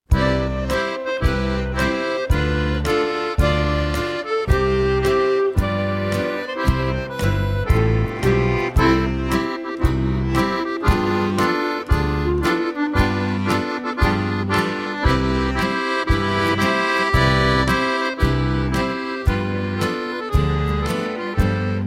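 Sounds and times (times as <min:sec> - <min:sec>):
instrumental gavotte: 0:00.1 - 0:21.8.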